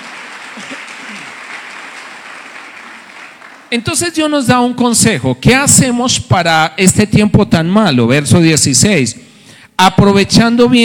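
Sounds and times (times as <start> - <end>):
church audience applauding: 0.0 - 3.8
speech: 3.7 - 10.8.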